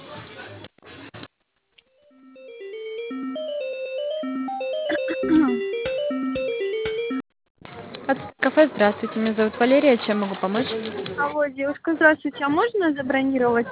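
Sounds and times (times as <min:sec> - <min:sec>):
melodic telephone tone while a call is transferred: 0:02.1 - 0:07.2
speech: 0:08.1 - 0:13.7.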